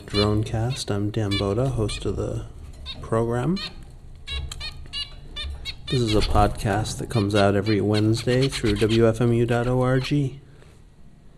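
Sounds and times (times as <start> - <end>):
zebra finch calls: 0.0 - 2.2, 2.8 - 10.3
low steady hum: 0.0 - 11.3
speech: 0.1 - 3.8, 5.9 - 10.4.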